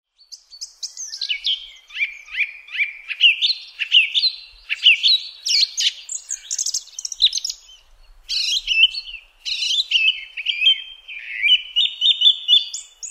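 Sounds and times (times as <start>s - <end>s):
song thrush singing: 0.1s - 13.0s.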